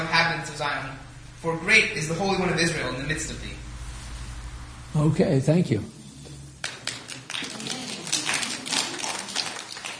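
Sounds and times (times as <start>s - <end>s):
speech: 0.6s - 3.7s, 4.9s - 6.0s
audience clapping: 6.6s - 9.9s.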